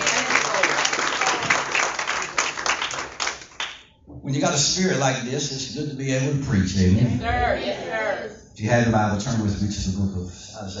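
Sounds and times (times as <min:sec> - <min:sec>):
audience clapping hands: 0:00.0 - 0:03.9
speech: 0:04.3 - 0:10.7.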